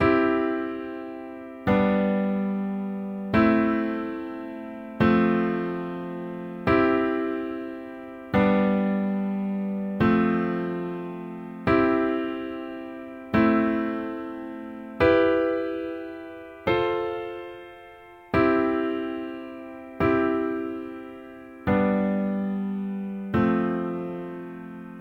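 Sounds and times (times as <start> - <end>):
chord in root position: 0.0 - 25.0.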